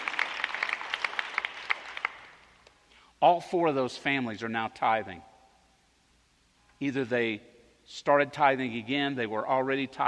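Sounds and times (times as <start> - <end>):
scattered audience applause: 0.0 - 2.4
speech: 3.2 - 5.3, 6.8 - 10.0.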